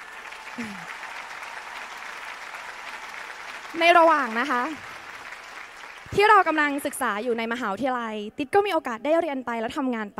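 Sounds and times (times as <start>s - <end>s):
audience applause: 0.0s - 7.5s
speech: 0.6s - 1.0s, 3.7s - 4.9s, 6.1s - 10.1s.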